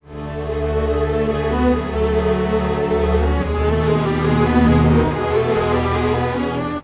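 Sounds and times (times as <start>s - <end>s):
time-stretched strings: 0.0s - 6.8s.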